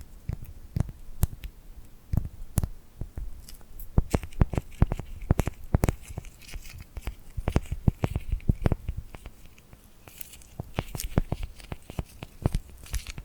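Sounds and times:
tingly glued hand sounds: 0:00.0 - 0:13.2.

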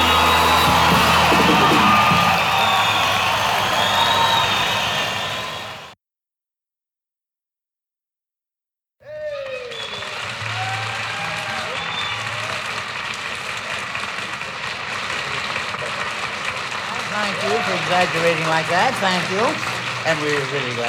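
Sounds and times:
audience applause: 0:00.0 - 0:06.0, 0:09.1 - 0:20.8
speech: 0:18.5 - 0:20.8.

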